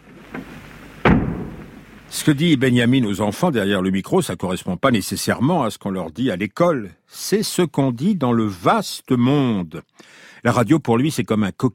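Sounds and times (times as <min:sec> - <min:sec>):
door pulled shut: 0:00.3 - 0:01.8
speech: 0:02.1 - 0:11.7.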